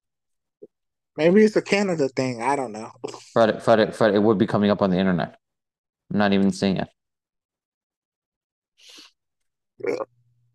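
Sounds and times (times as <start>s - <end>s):
speech: 1.2s - 5.4s, 6.1s - 7.0s, 9.8s - 10.2s
burp: 9.8s - 10.2s.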